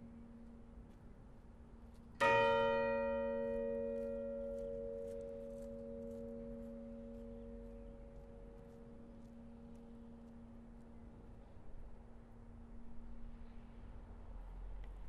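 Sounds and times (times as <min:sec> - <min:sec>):
Kópavogskirkja church bells tolling for a funeral: 0:02.2 - 0:11.9.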